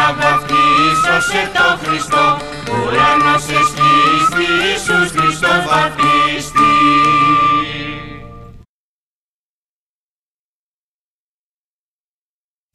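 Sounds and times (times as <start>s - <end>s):
Epiphany carols from Fournoi, Ikaria: 0.0s - 8.6s.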